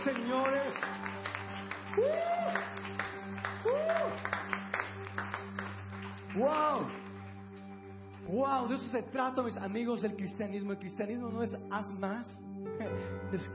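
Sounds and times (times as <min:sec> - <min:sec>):
crowd whooping: 0:00.0 - 0:04.6
audience applause: 0:00.0 - 0:08.4
speech: 0:06.4 - 0:07.0, 0:08.4 - 0:13.5.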